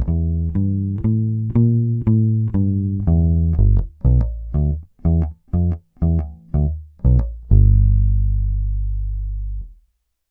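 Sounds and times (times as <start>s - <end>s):
Ibanez SRX 700 clean tone, humbuckers, worn D'Addario EXL-165 nickel roundwound strings: 0.0s - 9.9s.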